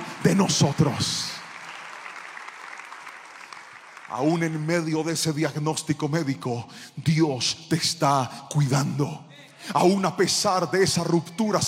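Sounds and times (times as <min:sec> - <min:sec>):
people applauding: 0:00.0 - 0:05.3
speech: 0:00.3 - 0:01.2, 0:04.1 - 0:11.6.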